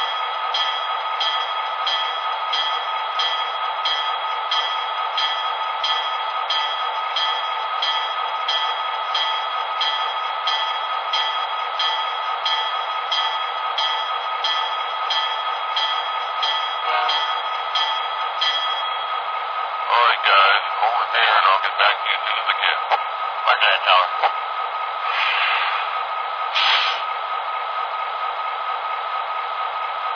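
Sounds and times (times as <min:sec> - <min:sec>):
SD45T diesel locomotive: 0:00.0 - 0:30.1.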